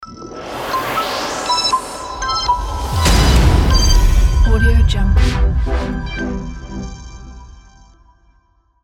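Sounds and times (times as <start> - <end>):
energy logo jingle: 0.0 - 8.1.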